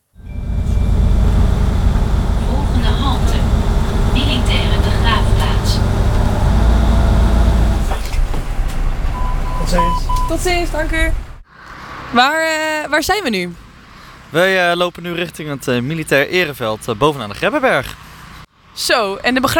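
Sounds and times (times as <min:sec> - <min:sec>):
bus engine rumble: 0:00.1 - 0:12.4
indistinct voices: 0:00.4 - 0:08.0
speech: 0:10.4 - 0:11.2, 0:12.1 - 0:13.6, 0:14.3 - 0:18.0, 0:18.8 - 0:19.5.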